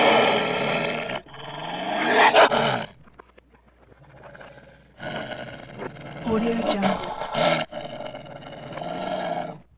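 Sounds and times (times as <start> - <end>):
wolf growl: 0.0 - 9.7.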